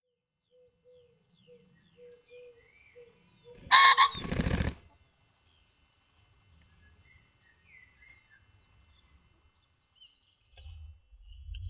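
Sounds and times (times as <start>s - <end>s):
common pheasant Phasianus colchicus crowing in Weinviertel Austria: 3.6s - 4.8s.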